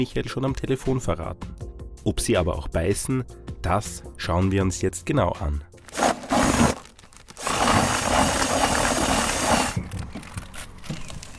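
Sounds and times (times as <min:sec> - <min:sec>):
speech: 0:00.0 - 0:05.7
cordless drill with mixing attachment stirring: 0:07.4 - 0:09.8.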